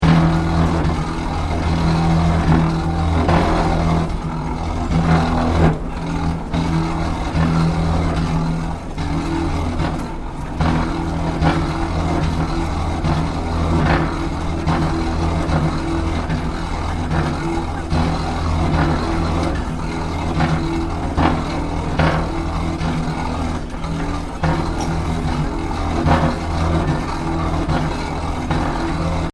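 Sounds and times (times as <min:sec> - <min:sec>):
malfunctioning industrial airport travelator: 0:00.0 - 0:29.3.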